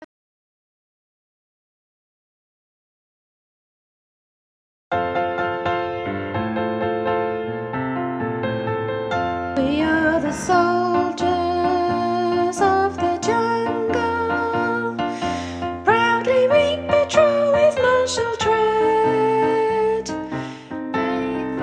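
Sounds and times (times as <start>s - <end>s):
piano: 4.9s - 21.6s.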